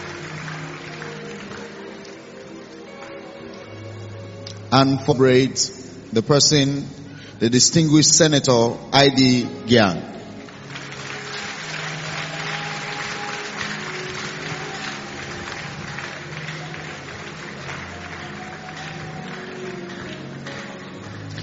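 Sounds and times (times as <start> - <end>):
audience clapping: 0.0 - 3.7, 10.2 - 21.4
speech: 4.7 - 10.2.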